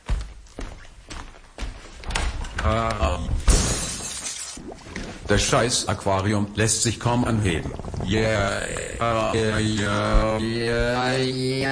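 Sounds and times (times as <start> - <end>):
person's voice: 2.6 - 3.4, 5.3 - 11.7
speech: 2.7 - 3.4, 5.3 - 11.7
window glass shattering as an armchair is thrown through: 3.5 - 4.6.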